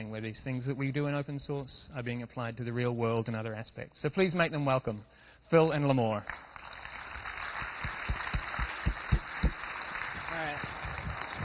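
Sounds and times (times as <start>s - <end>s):
speech: 0.0s - 6.5s
audience applause: 6.3s - 11.4s.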